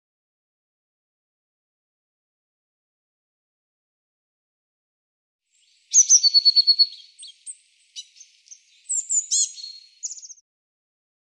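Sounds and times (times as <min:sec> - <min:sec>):
Eurasian blue tit calls: 0:05.6 - 0:10.4
speech: 0:06.4 - 0:07.4.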